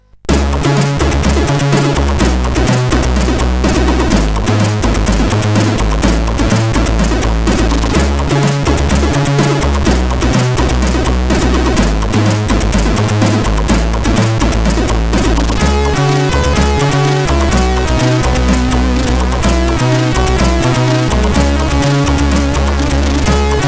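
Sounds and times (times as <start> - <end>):
SID CSG8580 chip music: 0.0 - 23.6.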